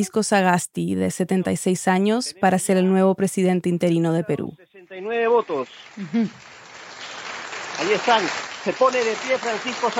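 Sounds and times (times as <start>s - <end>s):
speech: 0.0s - 6.5s, 7.8s - 9.9s
crowd applause in a legislative chamber: 5.2s - 9.9s.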